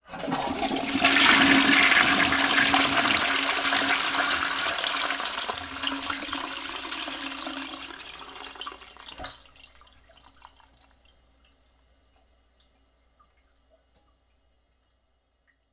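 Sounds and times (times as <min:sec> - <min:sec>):
toilet flush: 0:00.0 - 0:11.0.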